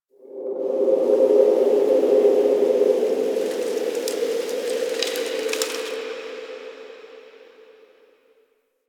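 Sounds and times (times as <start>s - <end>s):
wind in a park: 0.1s - 7.6s.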